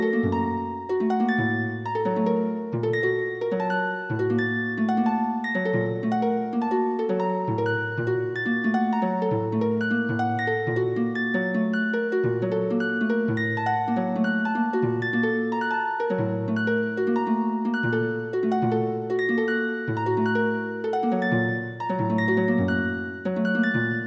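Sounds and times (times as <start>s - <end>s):
flowing harp: 0.0s - 24.0s.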